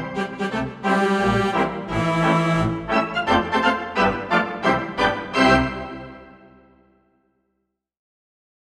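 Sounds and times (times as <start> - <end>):
polka on organ: 0.0 - 6.5.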